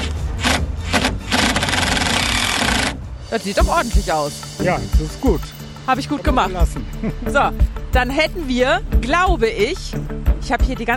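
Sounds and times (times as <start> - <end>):
cordless screwdriver driving screws into wood: 0.4 - 3.0
speech: 3.3 - 10.9.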